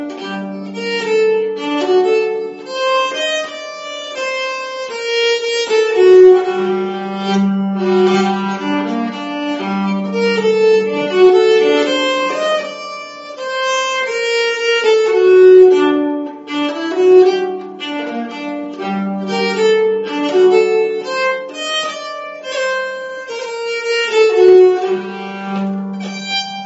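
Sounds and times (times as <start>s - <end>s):
nyckelharpa playing a slow polska: 0.0s - 26.6s.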